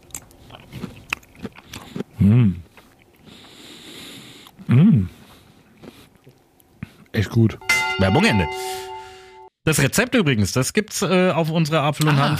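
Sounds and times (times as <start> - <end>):
biting and chewing roasted cauliflower curry: 0.0 - 7.1
speech: 2.2 - 2.6, 7.3 - 8.9, 9.7 - 12.3.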